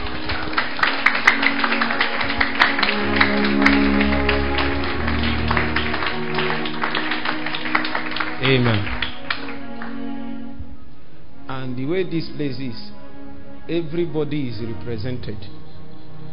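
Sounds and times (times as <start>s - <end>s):
church congregation clapping during a service: 0.0s - 10.3s
sustained low musical tones: 0.0s - 16.3s
speech: 8.5s - 8.9s, 11.6s - 13.0s, 13.7s - 15.6s.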